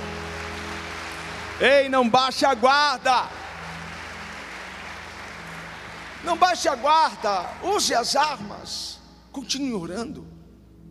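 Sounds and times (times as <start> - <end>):
audience applauding: 0.0 - 8.6
speech: 1.6 - 3.4, 6.2 - 10.3.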